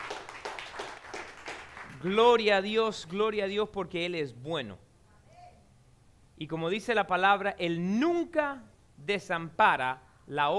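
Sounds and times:
audience applause: 0.0s - 2.1s
speech: 2.0s - 4.9s, 6.4s - 10.5s.

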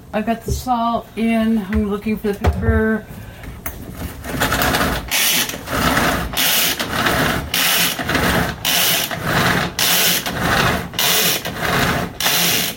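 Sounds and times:
speech: 0.1s - 3.2s
pull-string food chopper ratcheting and whirring: 4.3s - 12.7s.

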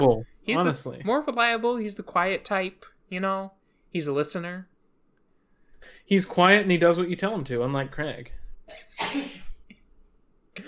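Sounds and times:
speech: 0.0s - 4.7s, 5.8s - 9.4s
sneeze: 8.9s - 9.6s.

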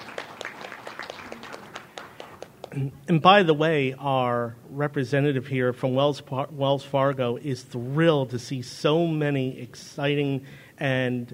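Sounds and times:
audience applause: 0.0s - 2.8s
speech: 2.8s - 11.3s.

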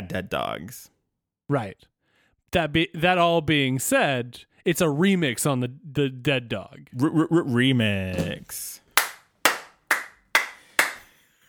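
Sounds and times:
speech: 0.1s - 0.9s, 1.5s - 1.9s, 2.5s - 8.8s
standing ovation applause: 9.0s - 11.1s.

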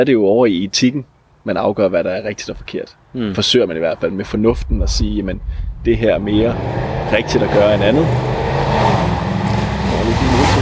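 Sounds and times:
speech: 0.0s - 9.1s
Porsche car engine revving: 4.3s - 10.5s.

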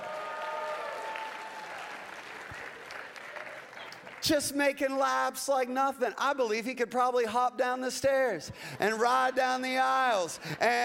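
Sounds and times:
audience cheering: 0.0s - 3.9s
speech: 4.2s - 10.8s.

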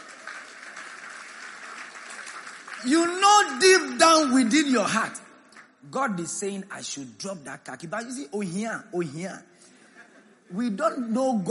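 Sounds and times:
audience clapping: 0.0s - 4.5s
speech: 2.8s - 5.2s, 5.8s - 9.5s, 10.5s - 11.5s.

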